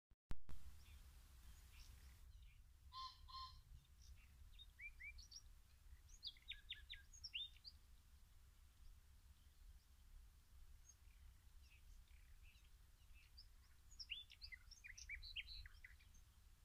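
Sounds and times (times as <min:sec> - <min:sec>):
common nightingale singing: 0:00.7 - 0:07.9, 0:10.8 - 0:16.4.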